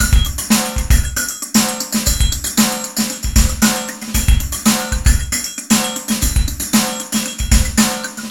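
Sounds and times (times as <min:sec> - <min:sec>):
phaser effect loop: 0:00.0 - 0:08.2.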